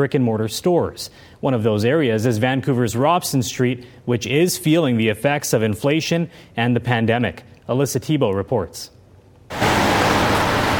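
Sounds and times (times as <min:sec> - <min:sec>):
speech: 0:00.0 - 0:09.7
rain falling on a city street: 0:09.5 - 0:10.7.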